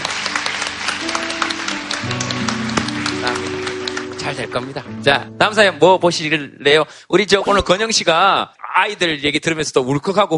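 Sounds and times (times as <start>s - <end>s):
crowd applause: 0.0s - 5.0s
soft tonal music: 0.0s - 8.4s
speech: 4.3s - 10.3s.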